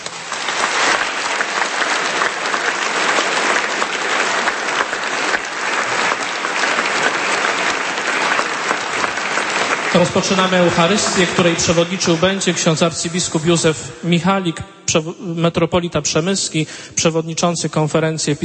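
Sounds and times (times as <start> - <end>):
congregation applause at a church event before Mass: 0.0 - 14.4
speech: 10.0 - 18.4.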